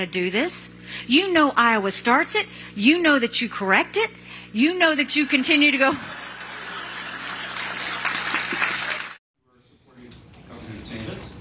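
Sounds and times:
speech: 0:00.0 - 0:06.2
laughter: 0:05.1 - 0:09.2
audience applause: 0:05.2 - 0:09.2.

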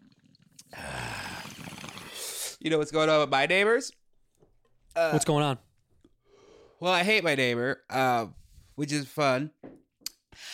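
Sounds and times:
bong hit bubbling: 0:00.0 - 0:02.6
person sipping Buffalo Trace whiskey: 0:00.0 - 0:02.6
speech: 0:02.6 - 0:04.0, 0:05.0 - 0:05.7, 0:06.8 - 0:09.6.

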